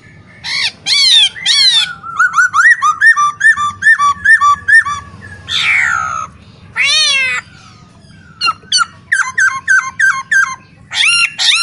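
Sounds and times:
caged masked laughingthrush in full song: 0.0 - 11.6.

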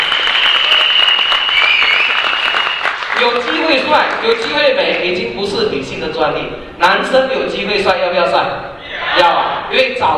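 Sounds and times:
audience applause at a motivational speech event: 0.0 - 4.4
speech: 3.2 - 10.1.

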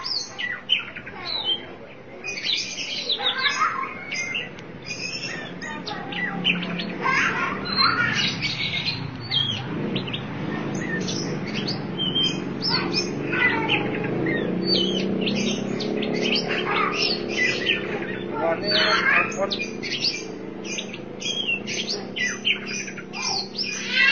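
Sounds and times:
Oriental magpie-robin song: 0.0 - 24.0
low constant hum: 0.0 - 24.0.

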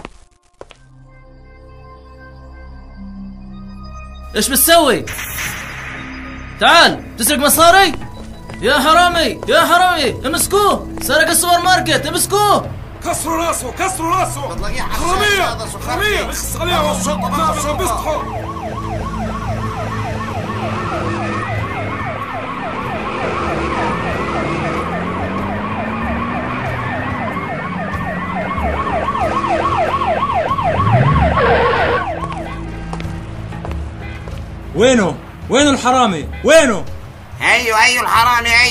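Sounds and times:
speech: 4.3 - 5.6, 6.6 - 8.0, 8.6 - 18.5, 34.8 - 38.7
police car siren wailing: 6.2 - 32.8.

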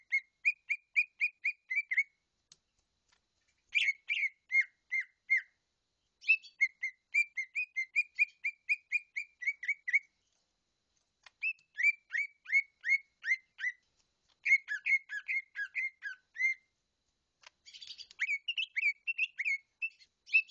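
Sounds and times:
bird singing bright whistled notes in rapid bursts: 0.0 - 2.2, 3.7 - 5.6, 6.2 - 10.2, 11.4 - 13.8, 14.4 - 16.7, 17.6 - 20.4.

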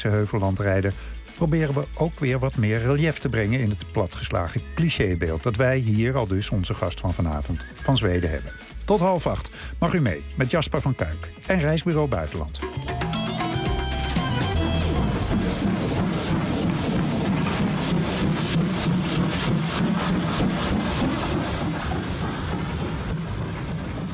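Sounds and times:
speech: 0.0 - 13.0
brief high tonal sound: 12.6 - 15.9
steam train running: 13.0 - 24.1.

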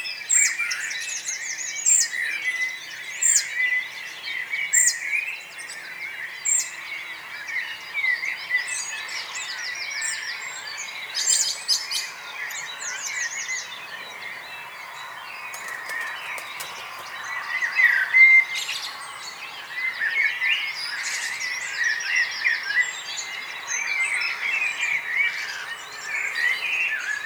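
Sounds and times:
birds singing in chorus: 0.0 - 27.2.

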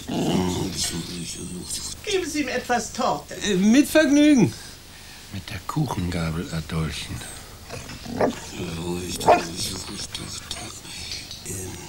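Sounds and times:
speech: 1.4 - 4.7, 5.3 - 10.9, 11.5 - 11.8
dog barking and yelping: 7.7 - 8.5, 9.1 - 9.6
voices: 7.7 - 11.8.

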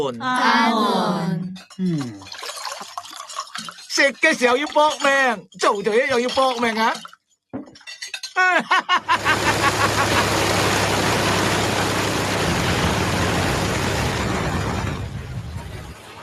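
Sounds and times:
speech: 0.0 - 2.4, 4.0 - 7.1, 8.4 - 10.0
laughter: 8.4 - 10.4
engine running: 9.1 - 16.2.

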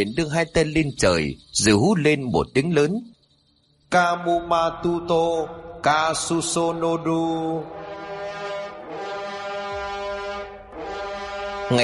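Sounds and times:
speech: 0.0 - 3.1, 3.9 - 8.0, 11.7 - 11.8
horn trumpet blasts: 7.6 - 11.8.

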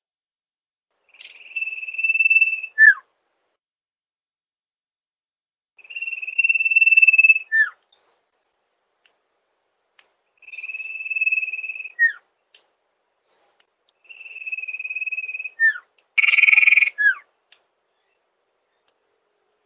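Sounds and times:
bird song used for training songbirds: 1.1 - 3.1, 5.8 - 8.7, 10.3 - 12.3, 13.2 - 19.6.

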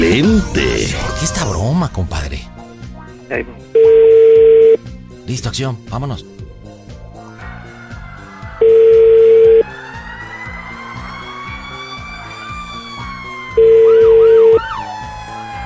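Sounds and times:
music with rising siren-like sweeps: 0.0 - 15.6
speech: 0.2 - 0.6, 1.2 - 2.6, 3.3 - 6.4
telephone line ringing back on an outgoing prank call: 3.8 - 4.8, 8.6 - 9.6, 13.6 - 14.6
laughter: 7.2 - 12.8.

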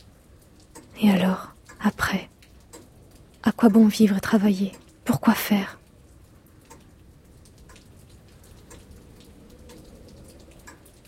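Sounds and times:
rain dripping from roof gutters: 0.0 - 11.0
speech: 1.0 - 2.3, 3.6 - 5.8.

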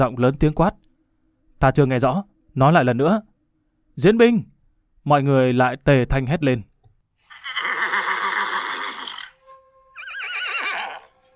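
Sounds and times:
speech: 0.0 - 0.8, 1.6 - 3.3, 4.0 - 6.7
black horse neighing long: 7.3 - 11.2.

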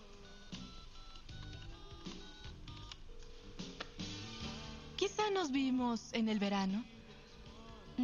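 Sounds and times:
telephone ringing tone: 0.0 - 3.0
telephone being dialed: 1.0 - 3.0
speech: 5.1 - 7.0.

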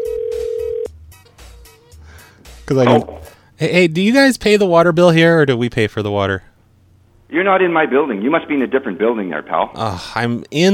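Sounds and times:
outgoing phone call ringback tone: 0.0 - 0.9
speech: 2.7 - 6.5, 7.3 - 10.7.

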